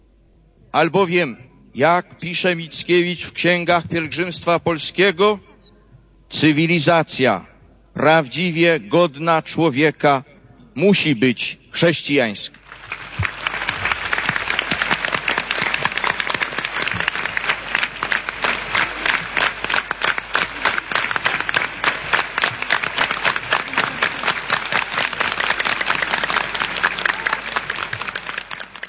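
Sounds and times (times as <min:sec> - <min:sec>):
speech: 0:00.7 - 0:05.5, 0:06.3 - 0:12.6
audience applause: 0:12.6 - 0:28.8.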